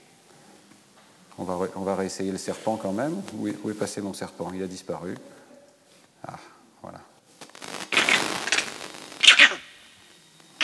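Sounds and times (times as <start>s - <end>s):
speech: 1.4s - 5.4s, 6.2s - 7.0s
animal alarm call warning of a leopard: 8.0s - 9.8s.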